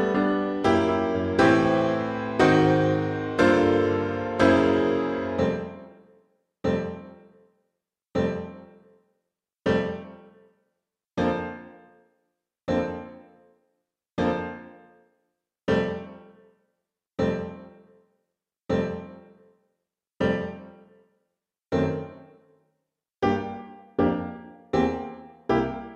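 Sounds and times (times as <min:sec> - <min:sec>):
piano: 0:00.0 - 0:07.4, 0:08.2 - 0:08.9, 0:09.7 - 0:10.4, 0:11.2 - 0:12.1, 0:12.7 - 0:13.5, 0:14.2 - 0:15.1, 0:15.7 - 0:16.5, 0:17.2 - 0:18.0, 0:18.7 - 0:19.5, 0:20.2 - 0:21.1, 0:21.7 - 0:22.6, 0:23.2 - 0:25.9.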